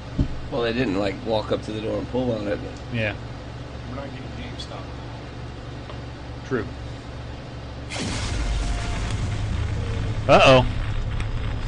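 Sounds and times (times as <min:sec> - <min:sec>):
speech: 0:00.5 - 0:03.3, 0:03.9 - 0:05.0, 0:06.5 - 0:06.9, 0:10.3 - 0:10.8
boat exploding in a video game: 0:07.9 - 0:11.6.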